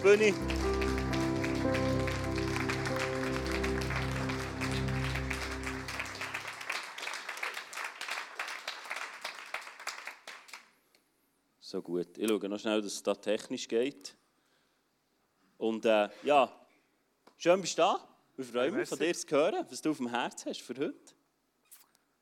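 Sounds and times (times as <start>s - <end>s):
speech: 0.0s - 0.6s, 11.7s - 14.2s, 15.6s - 16.6s, 17.4s - 21.2s
music playing: 0.0s - 6.7s
audience applause: 0.0s - 10.7s.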